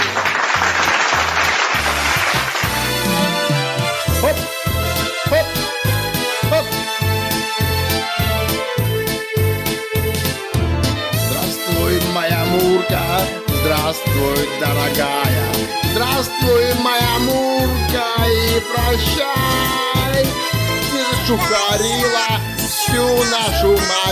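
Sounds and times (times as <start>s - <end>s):
dense applause: 0.0s - 3.2s
loud bouncy music with thumping bass beat and bright instrumental melody: 1.8s - 24.1s.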